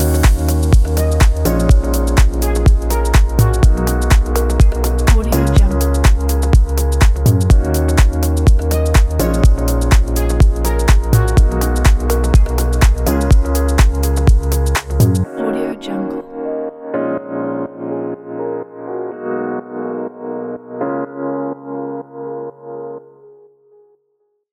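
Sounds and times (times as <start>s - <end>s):
summer deep house music: 0.0s - 17.8s.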